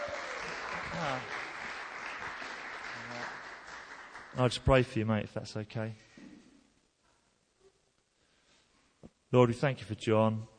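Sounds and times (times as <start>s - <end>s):
brief voices and cheers: 0.0s - 1.3s
crowd applause: 0.0s - 4.9s
speech: 4.4s - 6.1s, 9.3s - 10.5s.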